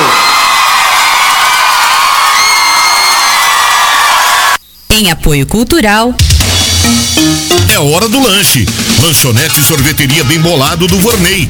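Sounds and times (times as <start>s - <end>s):
audience cheering and applauding: 0.0s - 4.6s
speech: 5.0s - 11.4s.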